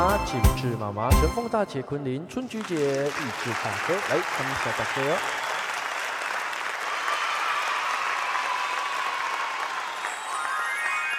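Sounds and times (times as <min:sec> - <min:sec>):
speech: 0:00.1 - 0:05.4
audience applause: 0:02.5 - 0:11.1.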